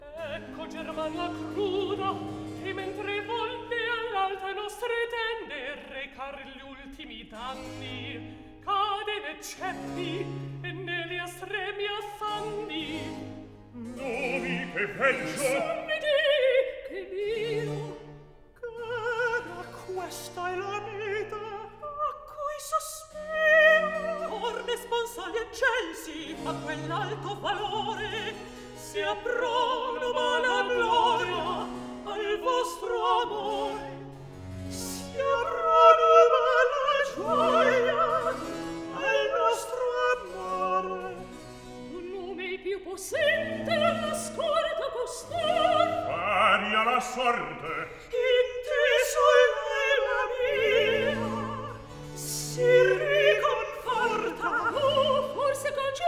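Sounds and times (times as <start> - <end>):
opera recitative: 0.0 - 56.0.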